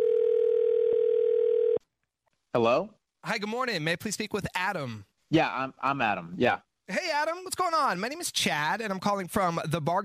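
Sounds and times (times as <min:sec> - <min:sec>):
mid-pitched phone line tone: 0:00.0 - 0:01.8
speech: 0:02.6 - 0:10.0.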